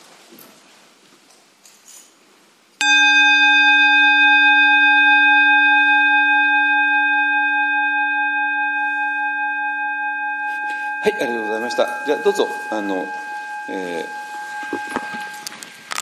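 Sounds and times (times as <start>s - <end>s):
meditation bell rung once: 2.8s - 15.9s
speech: 11.0s - 14.2s.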